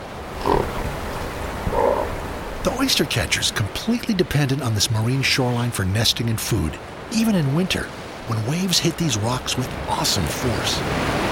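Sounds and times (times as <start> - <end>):
harbor seals snorting: 0.3 - 2.4
speech: 2.6 - 11.3.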